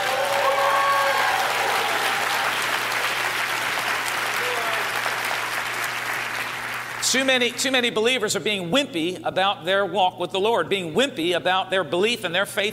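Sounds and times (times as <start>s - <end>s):
audience clapping hands: 0.0s - 7.7s
speech: 7.1s - 12.7s.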